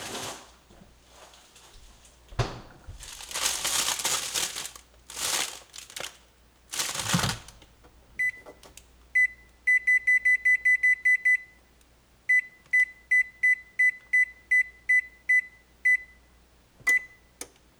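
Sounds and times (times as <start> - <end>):
frozen pizza packaging rustling and crinkling: 0.0 - 2.1, 2.8 - 7.7
high electronic beeps from an oven being set: 8.2 - 11.7, 12.3 - 17.4.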